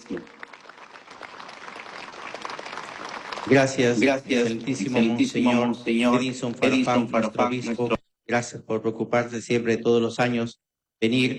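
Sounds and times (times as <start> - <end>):
audience applause in church: 0.0 - 5.0
speech: 3.5 - 11.3.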